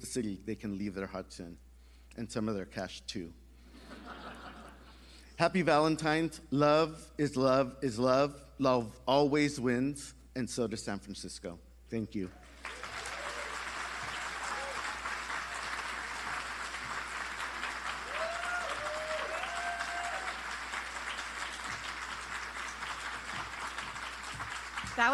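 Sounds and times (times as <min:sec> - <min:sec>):
speech: 0:00.0 - 0:03.4, 0:05.4 - 0:12.8
laughter: 0:03.8 - 0:05.0
audience applause: 0:12.4 - 0:25.1.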